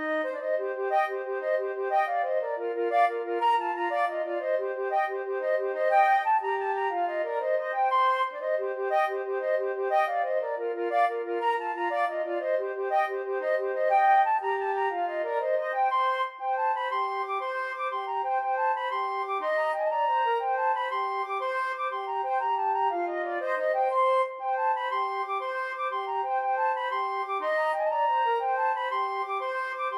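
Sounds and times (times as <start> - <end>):
flute duet playing an Irish jig medley: 0.0 - 29.9.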